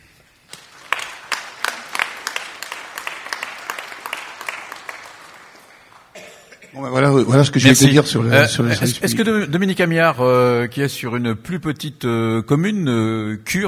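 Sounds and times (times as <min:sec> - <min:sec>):
audience applause: 0:00.5 - 0:06.4
speech: 0:06.7 - 0:13.6.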